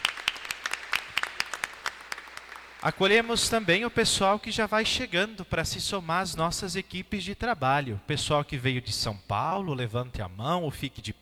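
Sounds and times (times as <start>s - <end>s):
light applause from a religious community welcoming novices: 0.0s - 3.8s
speech: 2.8s - 11.1s.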